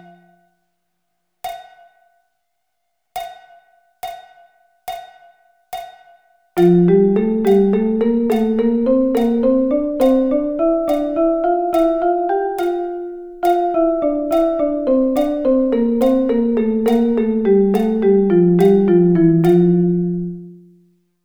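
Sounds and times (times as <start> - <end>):
drum double sticking: 6.6 - 20.1.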